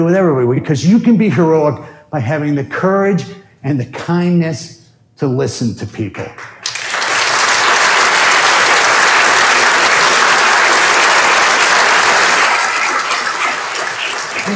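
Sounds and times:
speech: 0.0s - 6.6s
audience applause: 6.5s - 14.5s.

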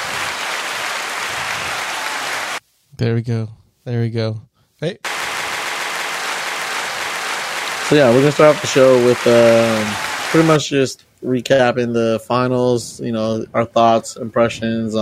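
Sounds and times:
audience applauding: 0.0s - 2.6s, 5.0s - 10.7s
speech: 3.0s - 5.1s, 7.9s - 14.9s.

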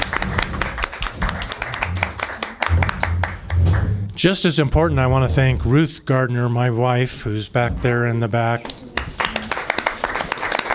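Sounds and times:
audience round of applause: 0.0s - 3.9s, 9.0s - 10.7s
speech: 4.2s - 8.8s.

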